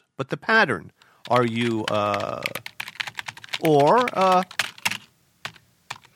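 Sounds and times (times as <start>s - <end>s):
speech: 0.2s - 2.7s, 3.6s - 4.6s
typing on a computer keyboard: 1.2s - 6.1s.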